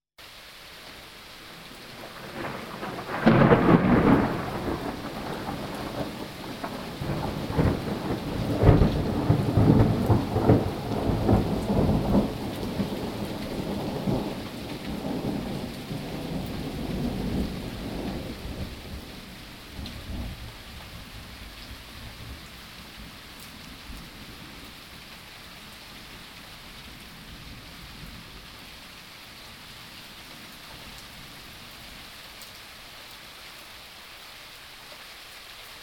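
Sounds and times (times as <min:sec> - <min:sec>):
thunder in nature: 0:01.9 - 0:20.6.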